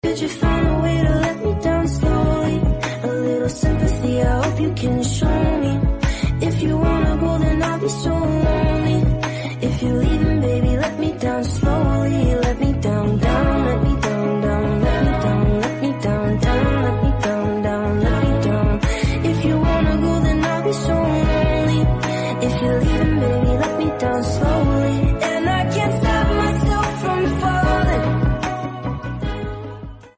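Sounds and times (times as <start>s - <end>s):
English song: 0.0s - 30.1s.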